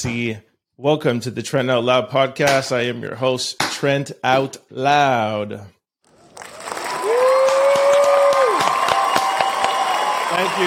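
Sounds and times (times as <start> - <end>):
speech: 0.0 - 5.8, 10.4 - 10.6
applause sound effect of crowd clapping and cheering: 6.1 - 10.6.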